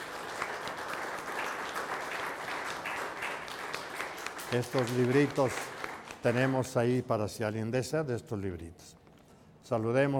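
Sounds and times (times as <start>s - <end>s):
applause: 0.0s - 7.0s
speech: 4.5s - 9.0s, 9.7s - 10.1s.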